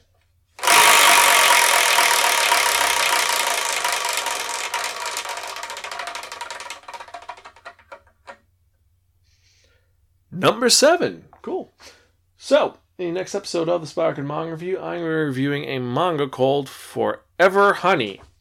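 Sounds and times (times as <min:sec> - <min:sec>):
wheel spun to pick the next manga review: 0:00.6 - 0:08.4
speech: 0:10.4 - 0:18.3.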